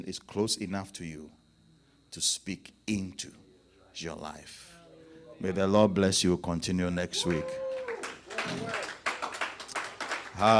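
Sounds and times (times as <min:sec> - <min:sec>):
speech: 0:00.0 - 0:01.4, 0:02.1 - 0:03.4, 0:04.0 - 0:04.7, 0:05.4 - 0:08.9, 0:10.4 - 0:10.5
audience clapping: 0:07.2 - 0:10.5.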